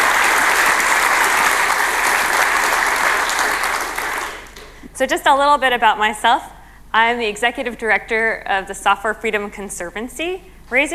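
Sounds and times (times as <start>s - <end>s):
audience applause: 0.0s - 4.8s
speech: 5.0s - 10.9s.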